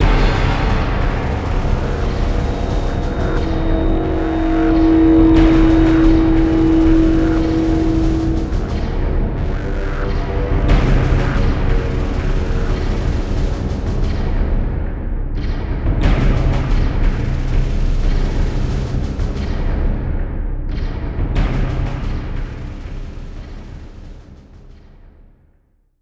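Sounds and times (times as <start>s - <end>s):
music: 0.0s - 26.0s.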